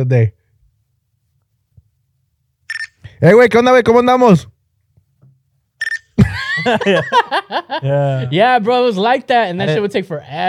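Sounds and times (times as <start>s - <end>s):
speech: 0.0s - 0.4s, 3.2s - 4.5s, 6.2s - 10.4s
Nextel push-to-talk phone chirp: 2.7s - 3.0s, 5.8s - 6.2s
laughter: 6.2s - 8.4s.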